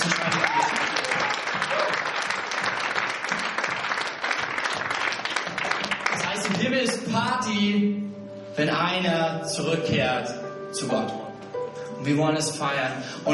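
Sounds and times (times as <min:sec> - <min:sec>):
audience applause: 0:00.0 - 0:07.0
speech: 0:07.1 - 0:08.0, 0:08.6 - 0:11.2, 0:12.0 - 0:13.3.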